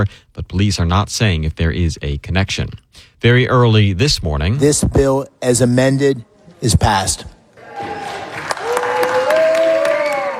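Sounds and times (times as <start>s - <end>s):
speech: 0.0s - 7.4s
Republican senators cheering after Senate vote: 7.6s - 10.3s.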